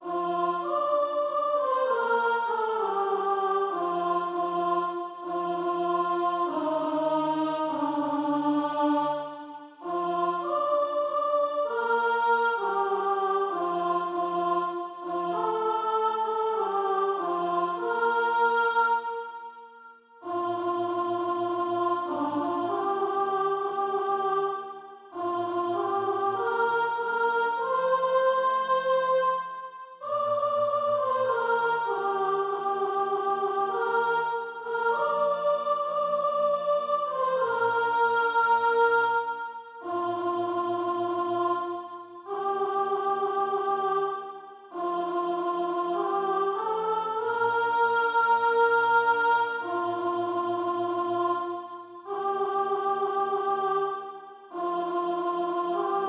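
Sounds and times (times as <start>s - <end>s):
soprano part of SATB practice music: 0.0s - 19.5s, 20.2s - 56.0s.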